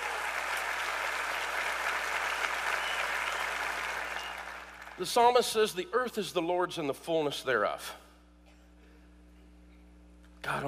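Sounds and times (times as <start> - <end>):
crowd clapping: 0.0 - 5.4
speech: 5.0 - 8.0, 10.5 - 10.6.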